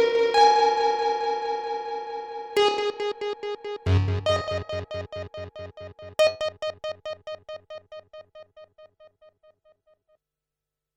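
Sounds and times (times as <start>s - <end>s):
Korg DSS-1 synthesizer with delay effect: 0.0s - 8.4s.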